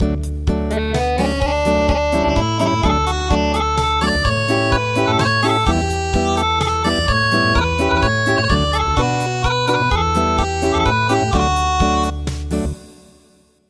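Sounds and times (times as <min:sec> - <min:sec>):
acoustic music: 0:00.0 - 0:13.4.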